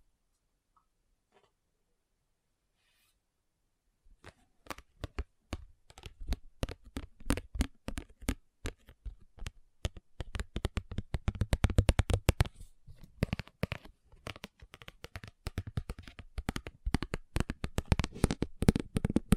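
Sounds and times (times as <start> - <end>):
fast tapping: 4.6 - 12.5, 13.2 - 19.3.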